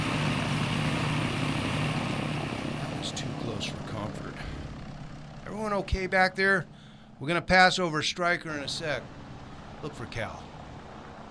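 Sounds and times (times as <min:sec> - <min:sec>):
small aircraft engine roar during a rough takeoff: 0:00.0 - 0:11.3
speech: 0:05.6 - 0:09.2, 0:09.8 - 0:10.5.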